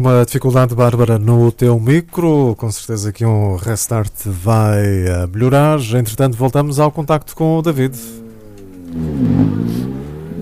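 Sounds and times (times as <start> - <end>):
speech: 0.0 - 8.2, 8.9 - 9.8
rally car engines arriving at a stage in Santana: 7.6 - 10.4.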